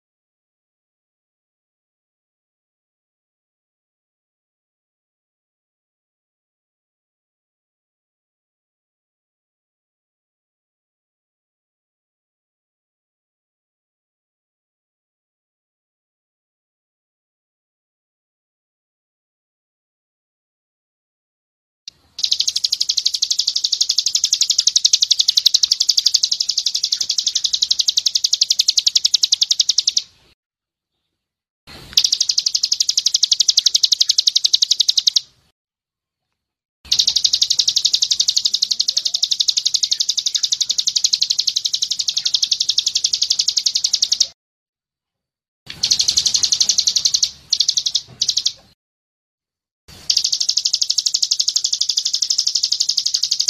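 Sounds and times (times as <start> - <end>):
bird fast high buzzy pulsed trill: 21.9 - 30.4, 31.8 - 35.4, 36.9 - 44.4, 45.7 - 48.8, 49.9 - 53.4.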